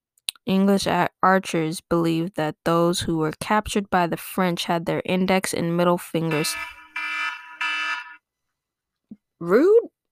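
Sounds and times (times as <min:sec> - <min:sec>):
speech: 0:00.5 - 0:06.8, 0:09.4 - 0:09.9
phone bedtime alarm buzzing: 0:06.3 - 0:08.2.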